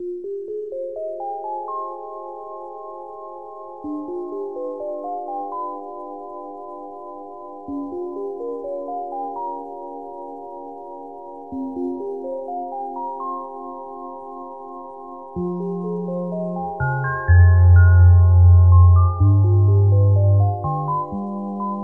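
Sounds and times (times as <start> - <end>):
relaxation music: 0.0 - 21.8.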